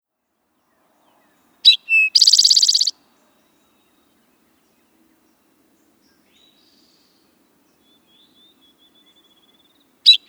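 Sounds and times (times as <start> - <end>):
Eastern towhee calling: 0.7 - 10.2.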